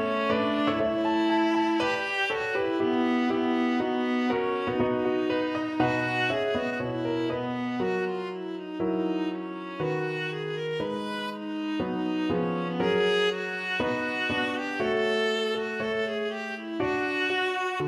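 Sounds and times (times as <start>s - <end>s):
viola playing: 0.0s - 17.8s.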